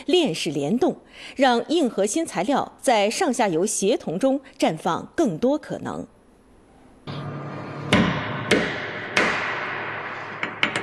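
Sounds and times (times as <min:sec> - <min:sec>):
speech: 0:00.0 - 0:06.2
hammer striking a hard ceramic ball: 0:07.8 - 0:10.8.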